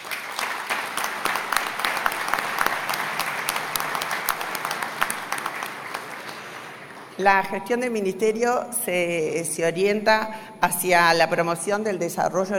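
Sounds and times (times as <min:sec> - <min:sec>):
audience applause: 0:00.0 - 0:07.2
speech: 0:07.2 - 0:12.5.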